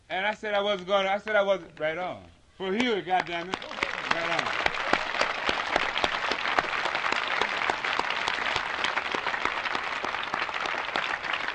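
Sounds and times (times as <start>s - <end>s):
speech: 0.1s - 4.7s
audience clapping: 2.7s - 11.5s.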